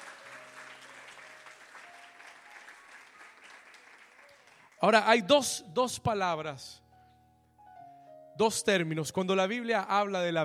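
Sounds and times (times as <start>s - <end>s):
audience applause: 0.0s - 4.8s
speech: 4.8s - 6.8s, 8.4s - 10.4s.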